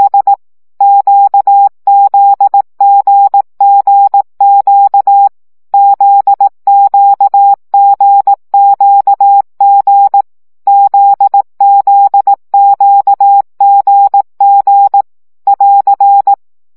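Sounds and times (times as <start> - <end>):
CW morse code practice tones: 0.0 - 16.4.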